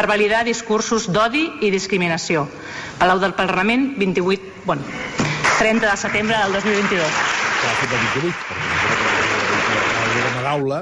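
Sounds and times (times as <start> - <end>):
speech: 0.0 - 8.9, 10.5 - 10.8
applause from members of parliament in the chamber: 5.2 - 10.8.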